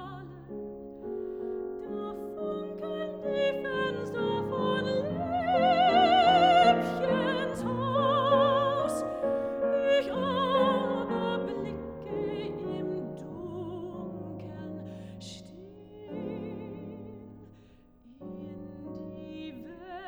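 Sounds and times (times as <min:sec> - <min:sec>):
piano: 0:00.0 - 0:20.0
person singing: 0:01.8 - 0:14.7.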